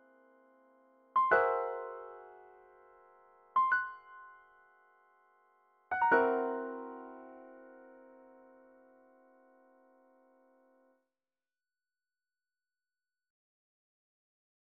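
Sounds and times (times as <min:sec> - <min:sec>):
piano playing a whole tone scale: 0:01.2 - 0:04.7, 0:05.9 - 0:09.0.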